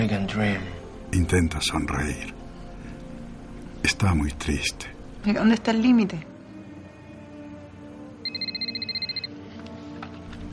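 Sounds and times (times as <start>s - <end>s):
speech: 0.0s - 2.4s, 3.8s - 6.3s
mobile phone ringing: 8.2s - 9.4s.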